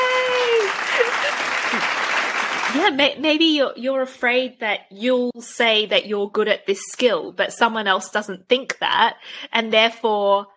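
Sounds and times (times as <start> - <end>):
group clapping: 0.0 - 3.0
speech: 2.8 - 10.5.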